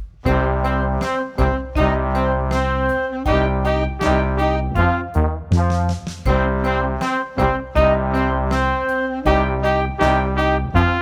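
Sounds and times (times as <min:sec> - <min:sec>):
power rock music: 0:00.2 - 0:05.2, 0:05.9 - 0:10.9.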